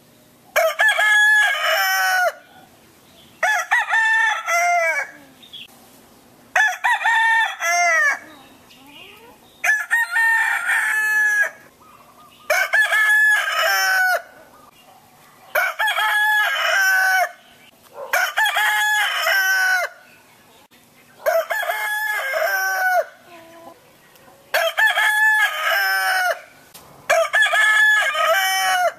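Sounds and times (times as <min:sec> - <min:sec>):
rooster crowing: 0:00.5 - 0:02.7, 0:03.4 - 0:05.2, 0:06.5 - 0:08.2, 0:09.6 - 0:11.7, 0:12.5 - 0:14.5, 0:15.5 - 0:17.4, 0:18.1 - 0:20.0, 0:21.2 - 0:23.3, 0:24.5 - 0:28.9.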